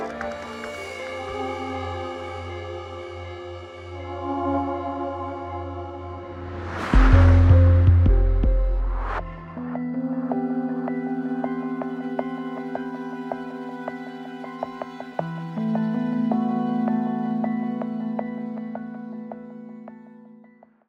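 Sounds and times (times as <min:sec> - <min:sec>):
crime documentary sampler music: 0:03.6 - 0:20.0.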